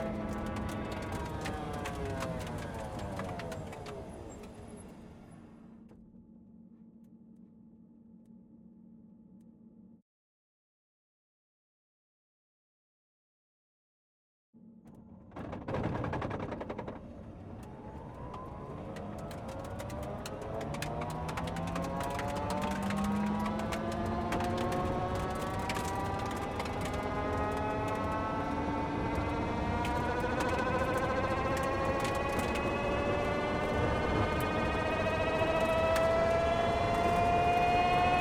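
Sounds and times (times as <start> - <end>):
Ford Puma WRC rally car engine starting driving and stopping onboard: 0.0 - 5.7, 15.3 - 38.1.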